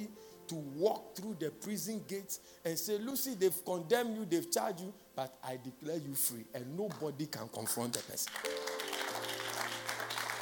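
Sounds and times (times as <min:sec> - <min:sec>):
speech: 0:00.0 - 0:08.8
audience clapping: 0:07.9 - 0:10.3.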